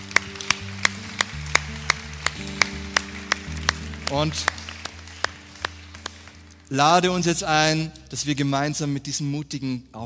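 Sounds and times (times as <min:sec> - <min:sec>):
audience applause: 0:00.0 - 0:06.7
speech: 0:04.1 - 0:04.6, 0:06.7 - 0:10.0.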